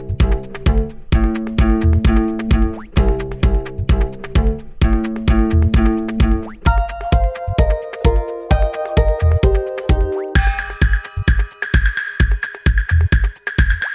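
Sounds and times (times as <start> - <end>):
background music: 0.0 - 13.8.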